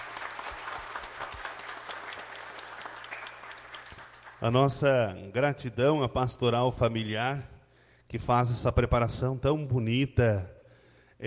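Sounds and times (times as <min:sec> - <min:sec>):
round of applause: 0:00.0 - 0:04.9
speech: 0:04.4 - 0:07.5, 0:08.1 - 0:10.6.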